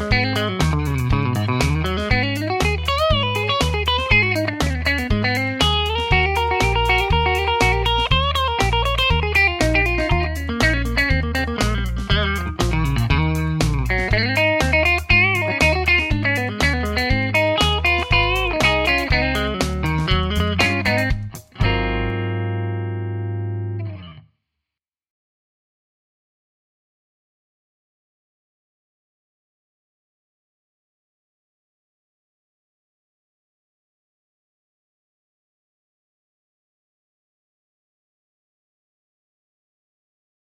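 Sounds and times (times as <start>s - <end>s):
clean Telecaster electric guitar on bridge and neck pickups: 0.0s - 24.3s.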